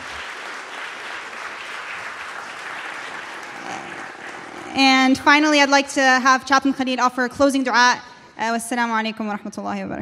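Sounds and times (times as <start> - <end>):
audience applause: 0.0 - 5.5
speech: 4.7 - 10.0.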